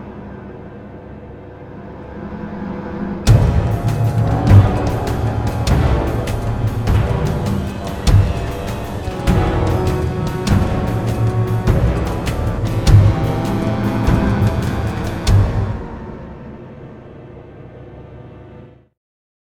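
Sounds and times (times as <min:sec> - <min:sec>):
combat music: 0:03.2 - 0:16.9.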